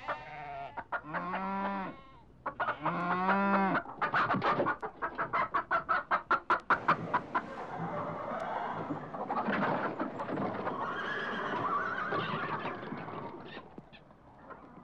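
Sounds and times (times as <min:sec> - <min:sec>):
hens in a hen house: 0:00.0 - 0:14.8
hogs grunting: 0:06.7 - 0:13.7.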